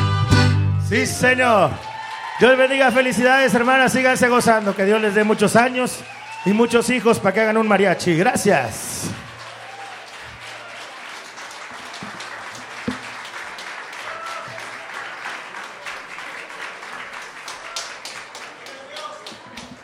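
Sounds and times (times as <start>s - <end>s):
speech: 0.9s - 9.2s
audience applause: 1.2s - 19.8s.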